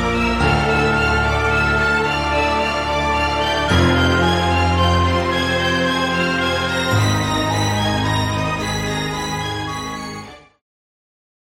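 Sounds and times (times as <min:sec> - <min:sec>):
choir singing: 0:00.0 - 0:08.8
flute: 0:00.0 - 0:10.6
strings: 0:00.0 - 0:10.6.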